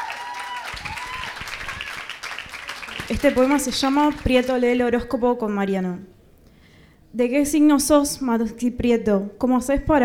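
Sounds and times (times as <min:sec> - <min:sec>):
applause: 0:00.0 - 0:05.0
speech: 0:03.1 - 0:06.2, 0:07.1 - 0:10.0.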